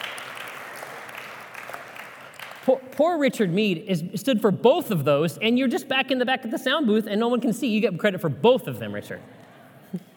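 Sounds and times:
audience applause: 0.0s - 2.7s
speech: 2.6s - 10.1s.

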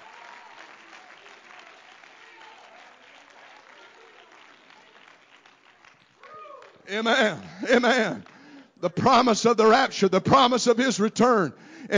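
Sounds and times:
audience clapping hands: 0.0s - 9.3s
speech: 6.9s - 11.9s.

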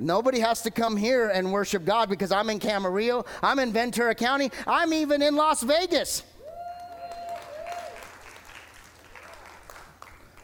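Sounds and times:
speech: 0.0s - 6.3s
audience cheering: 6.4s - 10.1s
audience applause: 6.6s - 10.4s.

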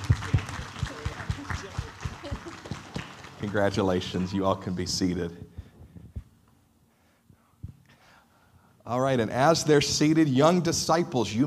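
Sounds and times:
audience clapping hands: 0.0s - 4.8s
speech: 3.4s - 5.5s, 8.9s - 11.4s.

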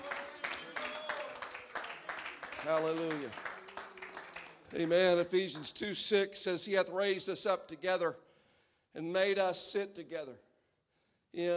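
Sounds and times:
audience clapping hands: 0.0s - 5.8s
speech: 2.6s - 3.5s, 4.7s - 8.3s, 9.0s - 10.5s, 11.3s - 11.5s.

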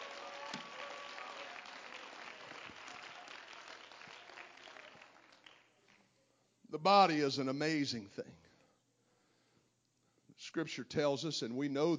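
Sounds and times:
audience clapping hands: 0.0s - 6.1s
speech: 6.7s - 8.5s, 10.5s - 11.9s.

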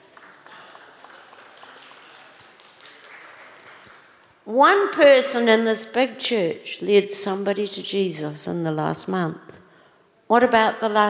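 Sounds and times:
audience applause: 0.0s - 4.3s
speech: 4.5s - 9.6s, 10.3s - 11.0s.

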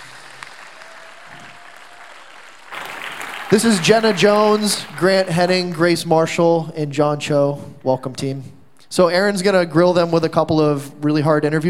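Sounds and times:
audience applause welcoming students: 0.0s - 6.0s
speech: 3.5s - 11.6s.

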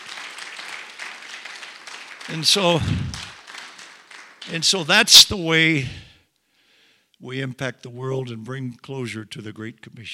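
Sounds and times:
audience clapping: 0.0s - 5.1s
speech: 2.3s - 3.2s, 4.4s - 6.1s, 7.2s - 10.1s.

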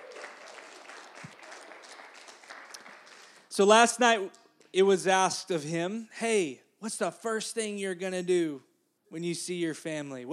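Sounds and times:
audience applauding: 0.0s - 3.6s
speech: 3.6s - 10.3s.

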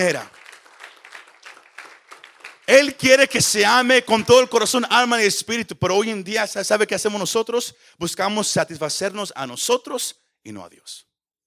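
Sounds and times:
speech: 0.0s - 0.4s, 2.7s - 11.1s
crowd applauding: 0.0s - 4.5s.

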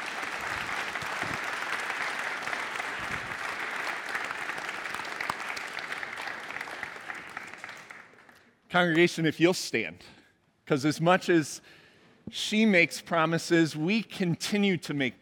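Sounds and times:
crowd round of applause: 0.0s - 8.4s
speech: 8.7s - 15.2s.

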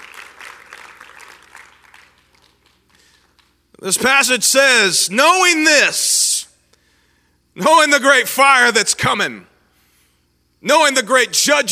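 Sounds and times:
audience clapping hands: 0.0s - 3.7s
speech: 3.8s - 6.3s, 7.6s - 9.5s, 10.6s - 11.7s.

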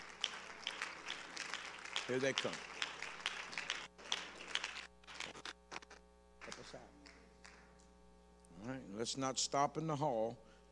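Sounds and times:
audience clapping: 0.0s - 7.9s
speech: 2.1s - 2.7s, 6.6s - 7.0s, 8.6s - 10.7s.

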